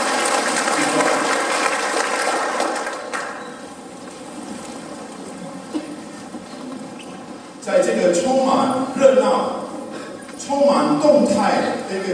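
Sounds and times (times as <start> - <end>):
audience applause: 0.0 - 3.5
speech: 7.8 - 9.6, 10.5 - 12.1.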